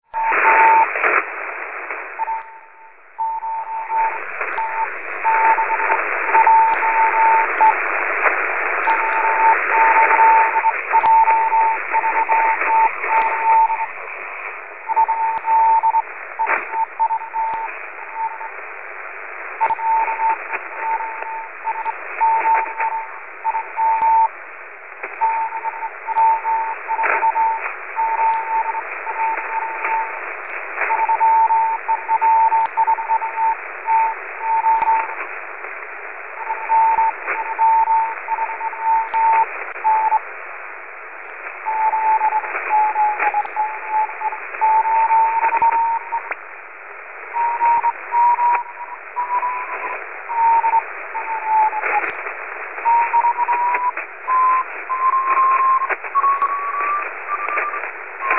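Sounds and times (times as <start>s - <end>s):
morse code beeps: 0.1s - 1.0s, 2.2s - 7.8s, 8.7s - 14.0s, 14.8s - 18.6s, 19.6s - 24.3s, 25.1s - 30.2s, 30.8s - 35.2s, 36.4s - 40.2s, 41.6s - 46.4s, 47.3s - 52.2s, 52.8s - 58.3s.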